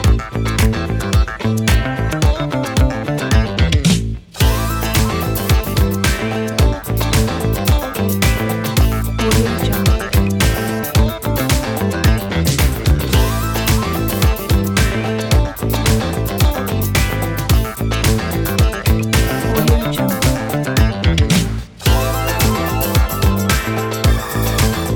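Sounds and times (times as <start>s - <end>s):
classic funk background music: 0.0s - 24.9s.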